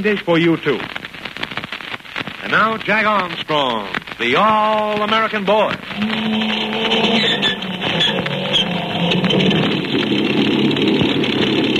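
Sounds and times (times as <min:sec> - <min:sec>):
speech: 0:00.0 - 0:01.0, 0:02.4 - 0:08.4
big amphibian plane motors roaring: 0:06.0 - 0:11.1.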